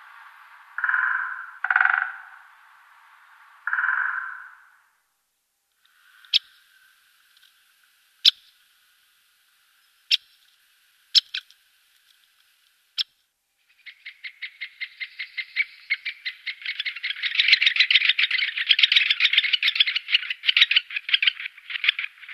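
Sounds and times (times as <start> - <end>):
great spotted woodpecker calling: 0.0 - 4.8, 13.7 - 22.3.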